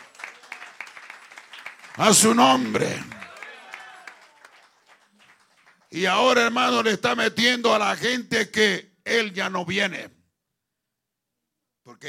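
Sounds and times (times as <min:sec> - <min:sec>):
audience applauding loudly: 0:00.0 - 0:06.1
speech: 0:02.0 - 0:03.2, 0:05.9 - 0:10.2, 0:11.9 - 0:12.0.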